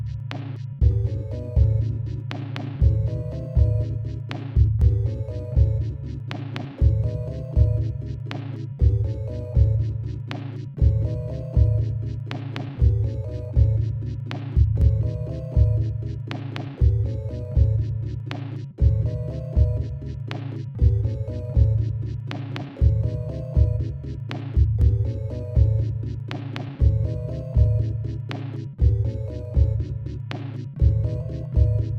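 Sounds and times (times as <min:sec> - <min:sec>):
sine wave tone: 0:00.8 - 0:31.9.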